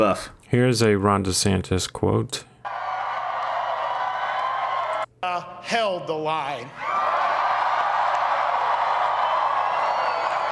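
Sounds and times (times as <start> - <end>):
speech: 0.0 - 2.5, 5.3 - 7.1
crowd clapping: 2.7 - 5.1, 6.9 - 10.4.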